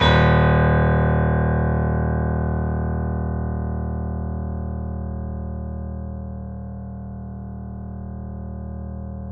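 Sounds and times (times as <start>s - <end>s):
piano note D sharp: 0.0s - 5.1s.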